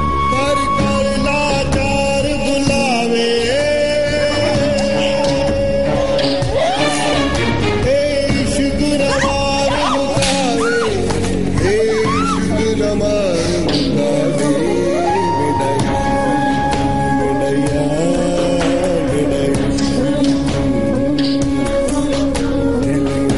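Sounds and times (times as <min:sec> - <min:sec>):
man's voice: 0:00.2 - 0:23.3.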